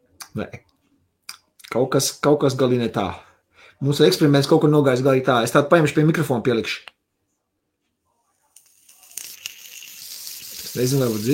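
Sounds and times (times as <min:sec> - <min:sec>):
speech: 0:00.4 - 0:00.7, 0:01.7 - 0:06.9, 0:10.8 - 0:11.3
vape coil sizzling and bubbling: 0:08.5 - 0:11.3.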